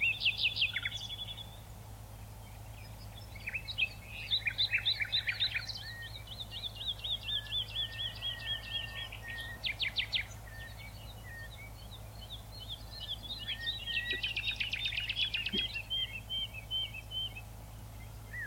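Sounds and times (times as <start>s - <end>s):
morning ambience on the Maures plain: 0.0s - 18.4s.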